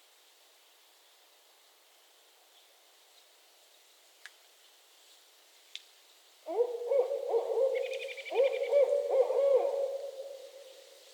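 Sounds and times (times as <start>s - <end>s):
barred owls hooting duet: 6.5s - 10.8s.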